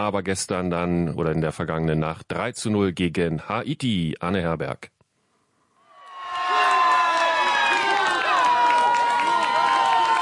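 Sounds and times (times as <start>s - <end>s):
speech: 0.0s - 5.0s
fans cheering a goal: 5.9s - 10.1s.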